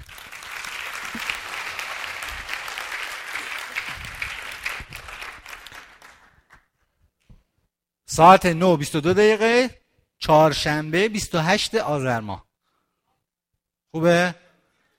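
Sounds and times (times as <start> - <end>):
audience applauding: 0.0 - 6.7
speech: 8.2 - 12.4, 13.9 - 14.4.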